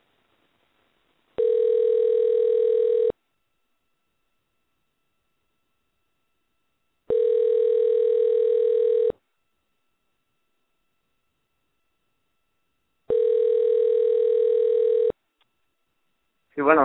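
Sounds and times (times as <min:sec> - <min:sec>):
ringing tone of an outgoing phone call: 0:01.4 - 0:03.2, 0:07.1 - 0:09.2, 0:13.1 - 0:15.2.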